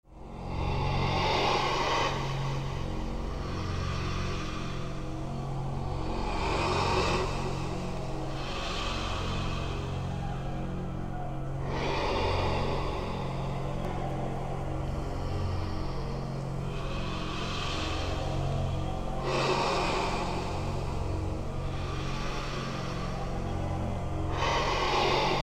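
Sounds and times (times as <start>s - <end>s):
ambience: 0.1s - 25.4s.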